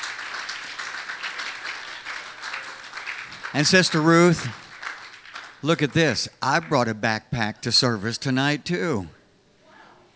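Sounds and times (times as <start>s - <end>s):
audience clapping: 0.0s - 7.6s
speech: 3.5s - 4.6s, 5.6s - 9.2s.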